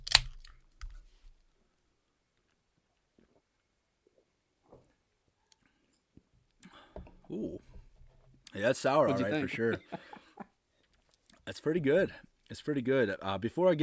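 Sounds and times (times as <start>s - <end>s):
beer can holding a sour beer cracked open: 0.0s - 1.0s
speech: 7.3s - 7.7s, 8.6s - 10.2s, 11.5s - 13.8s
laughter: 8.6s - 10.5s.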